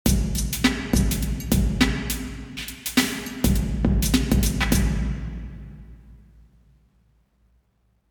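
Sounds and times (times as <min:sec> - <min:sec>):
drum in a cathedral: 0:00.0 - 0:06.2.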